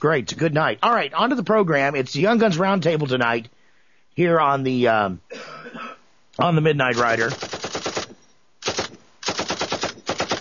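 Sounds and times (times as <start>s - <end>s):
speech: 0.0s - 3.6s, 4.2s - 7.7s
Thompson submachine gun firing during target practice: 7.0s - 10.4s.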